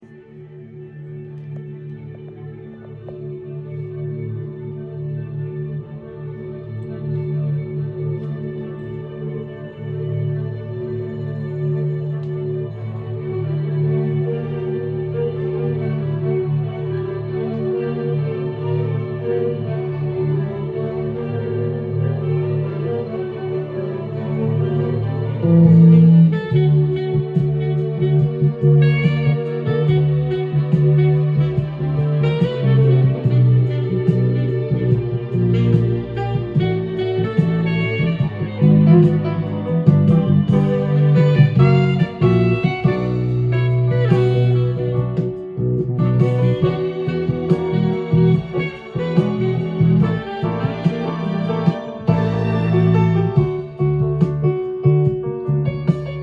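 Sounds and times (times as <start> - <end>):
strings: 0.0 - 56.2.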